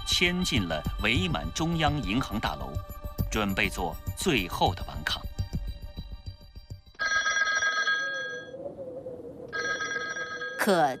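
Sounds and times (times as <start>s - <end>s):
speech: 0.1s - 5.3s, 10.6s - 10.9s
office telephone bell ringing: 7.0s - 8.6s, 9.6s - 10.9s.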